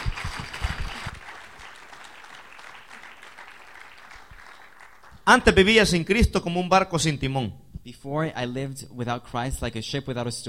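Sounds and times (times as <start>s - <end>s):
audience applause: 0.0s - 5.2s
speech: 5.3s - 10.4s.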